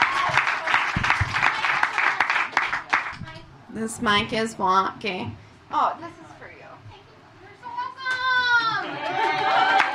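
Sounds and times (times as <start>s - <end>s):
audience applause: 0.0s - 3.2s, 8.7s - 9.9s
speech: 3.8s - 6.3s.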